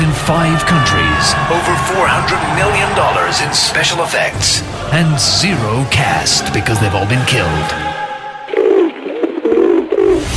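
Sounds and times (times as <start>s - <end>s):
speech: 0.3s - 7.9s
pigeon cooing: 8.5s - 10.2s.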